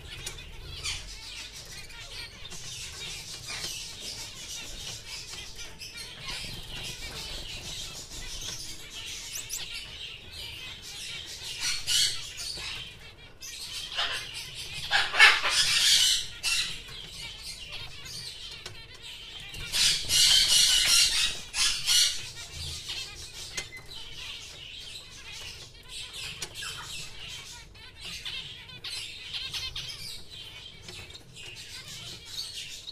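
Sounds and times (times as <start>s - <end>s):
birds in an aviary in a pet shop: 0.0s - 32.8s.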